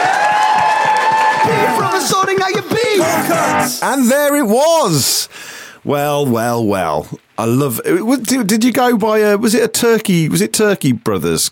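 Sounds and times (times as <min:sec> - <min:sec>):
audience applause: 0:00.0 - 0:03.8
whooping and cheering: 0:00.0 - 0:03.8
speech: 0:02.0 - 0:11.5.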